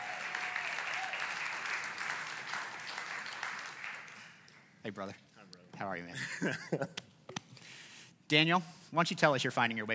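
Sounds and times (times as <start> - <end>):
audience applause welcoming a guest speaker onto a stage: 0.0 - 4.5
speech: 4.8 - 7.0, 8.3 - 9.9.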